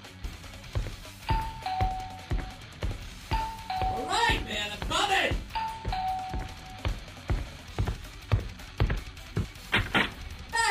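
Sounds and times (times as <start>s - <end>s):
dull low thumps: 0.3s - 10.4s
two-note doorbell ding-dong: 1.3s - 2.4s, 3.4s - 4.5s, 5.6s - 6.9s.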